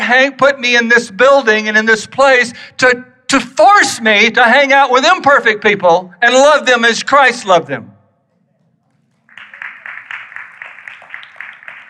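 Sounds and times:
speech: 0:00.1 - 0:07.9
weak audience applause: 0:08.9 - 0:11.8.

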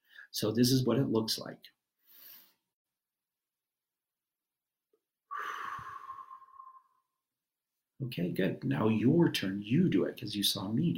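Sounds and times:
speech: 0:00.3 - 0:01.8, 0:08.0 - 0:10.9
adult taking a deep breath in and letting it out: 0:05.3 - 0:07.2.

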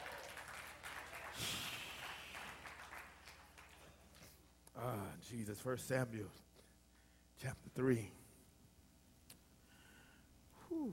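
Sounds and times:
audience applause: 0:00.0 - 0:04.1
speech: 0:04.8 - 0:06.5, 0:07.4 - 0:08.2.

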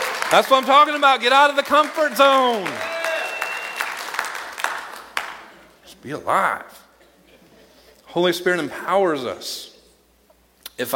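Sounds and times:
church congregation clapping: 0:00.0 - 0:05.8
speech: 0:00.3 - 0:02.9, 0:06.0 - 0:06.8, 0:08.1 - 0:09.7, 0:10.8 - 0:10.9.

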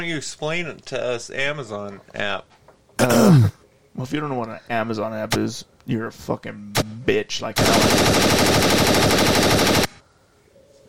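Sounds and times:
speech: 0:00.0 - 0:09.6
machine gun firing: 0:07.6 - 0:10.0.

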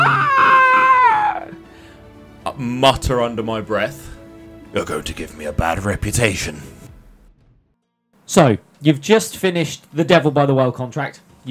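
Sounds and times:
shrill screech: 0:00.0 - 0:01.6
speech: 0:02.6 - 0:04.1, 0:04.7 - 0:06.7, 0:08.3 - 0:11.4.

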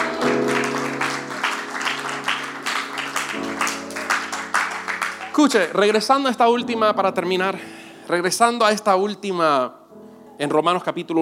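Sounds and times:
audience applause: 0:00.0 - 0:06.1
speech: 0:05.4 - 0:09.8, 0:10.4 - 0:11.2.

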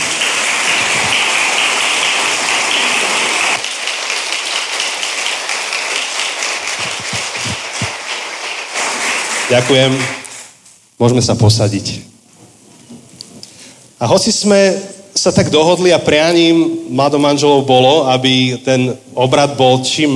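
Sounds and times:
audience applause: 0:00.0 - 0:10.3
speech: 0:09.5 - 0:10.2, 0:11.0 - 0:12.1, 0:14.0 - 0:20.1.

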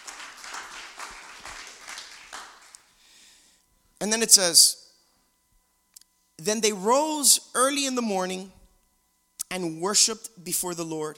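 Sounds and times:
audience clapping: 0:00.0 - 0:03.0
speech: 0:04.0 - 0:04.8, 0:06.5 - 0:08.6, 0:09.5 - 0:11.1.

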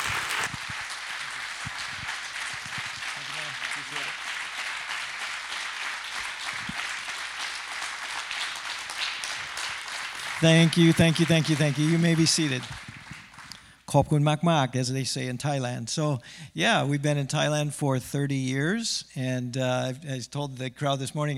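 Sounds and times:
church congregation applauding to welcome a speaker: 0:00.0 - 0:13.7
speech: 0:10.4 - 0:12.8, 0:13.9 - 0:21.3.

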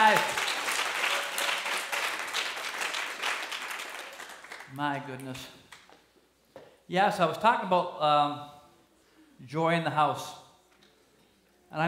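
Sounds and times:
audience applause: 0:00.0 - 0:04.8
speech: 0:00.1 - 0:00.4, 0:04.8 - 0:05.6, 0:06.9 - 0:08.6, 0:09.4 - 0:10.4.

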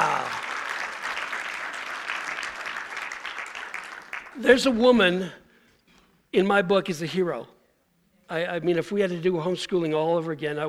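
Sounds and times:
audience applause: 0:00.0 - 0:04.4
speech: 0:04.4 - 0:05.4, 0:06.3 - 0:07.6, 0:08.3 - 0:10.6.

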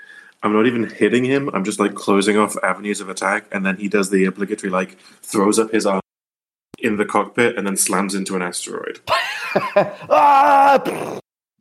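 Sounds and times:
speech: 0:00.4 - 0:06.0, 0:06.8 - 0:11.2
person vocally imitating the Wilhelm scream: 0:10.0 - 0:11.2.

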